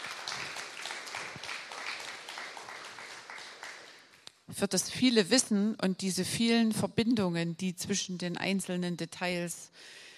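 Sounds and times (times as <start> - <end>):
audience clapping at a German event after a presentation: 0.0 - 4.2
speech: 4.5 - 10.0.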